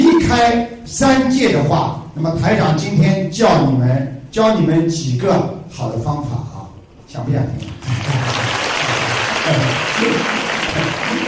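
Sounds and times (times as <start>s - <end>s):
speech: 0.3s - 8.6s, 9.5s - 11.2s
audience applause: 7.7s - 11.2s.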